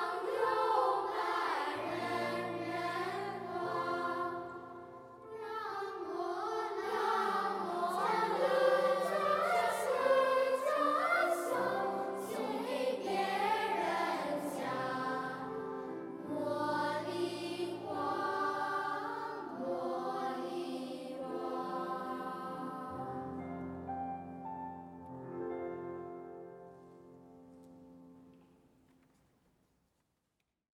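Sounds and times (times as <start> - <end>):
treble choir singing: 0.0 - 23.9.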